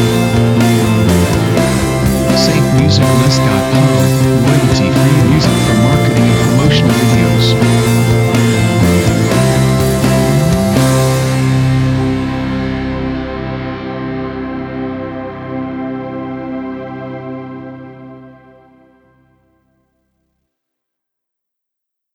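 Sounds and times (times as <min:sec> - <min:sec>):
energetic uplifting rock opener music: 0:00.0 - 0:15.9.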